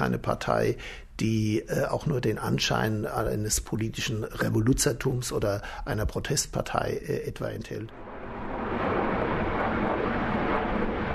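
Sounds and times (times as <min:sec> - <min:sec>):
speech: 0:00.0 - 0:08.0
passenger airplane over Mainz on landing approach to Frankfurt am Main airport: 0:07.9 - 0:11.1.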